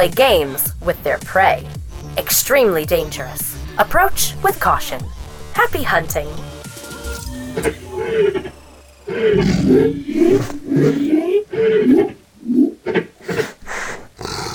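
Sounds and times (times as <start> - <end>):
speech: 0.0 - 6.6, 7.6 - 13.5
big cats roaring: 7.4 - 14.5.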